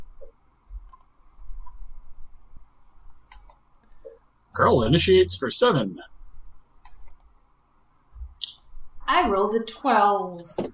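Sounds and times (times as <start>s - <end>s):
soft hiss: 0.0s - 10.7s
mouse clicks on tokens in an online tabletop game: 0.2s - 1.9s, 3.3s - 4.2s, 6.8s - 7.4s
speech: 4.6s - 6.2s, 9.5s - 10.7s.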